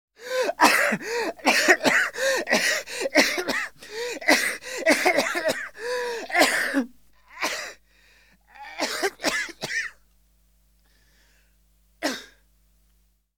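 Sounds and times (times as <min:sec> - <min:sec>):
man coughing: 0:00.3 - 0:07.8, 0:08.6 - 0:10.0, 0:12.0 - 0:12.4.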